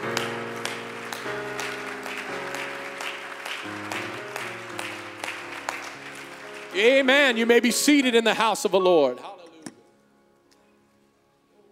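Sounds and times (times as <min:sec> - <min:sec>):
crowd clapping hands in praise: 0:00.0 - 0:08.5
loud sustained keyboard chords: 0:00.0 - 0:10.8
speech: 0:06.8 - 0:09.3.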